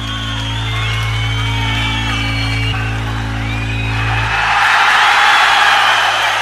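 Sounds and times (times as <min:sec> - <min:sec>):
steady low hum: 0:00.0 - 0:04.6
concert audience shouting and cheering: 0:00.0 - 0:06.4.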